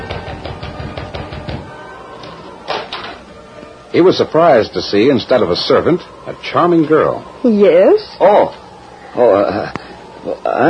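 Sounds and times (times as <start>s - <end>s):
knocking on a wooden door: 0.0s - 1.7s
speech: 3.9s - 8.6s, 9.2s - 10.6s.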